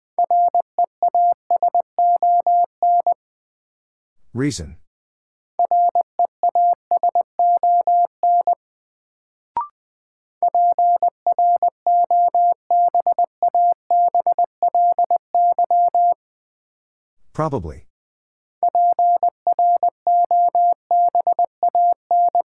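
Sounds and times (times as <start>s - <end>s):
morse code beeps at 20 wpm: 0.2s - 3.2s, 5.6s - 8.6s, 10.4s - 16.2s, 18.6s - 22.4s
person speaking a word: 4.4s - 4.8s, 17.4s - 17.9s.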